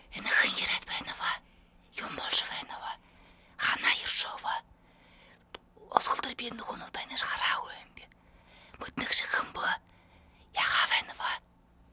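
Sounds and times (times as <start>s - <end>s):
person whispering: 0.0s - 3.0s, 3.6s - 4.6s, 5.5s - 8.1s, 8.8s - 9.8s, 10.6s - 11.4s.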